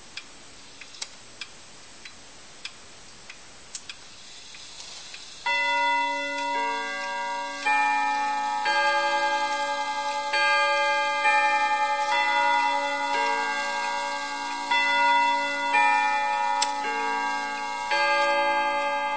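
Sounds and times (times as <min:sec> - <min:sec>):
clock chime striking 45 minutes: 0:05.4 - 0:19.1.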